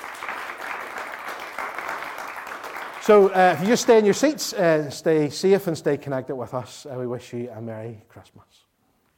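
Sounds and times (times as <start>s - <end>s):
audience applause at a Christmas event: 0.0s - 4.5s
speech: 3.1s - 8.7s.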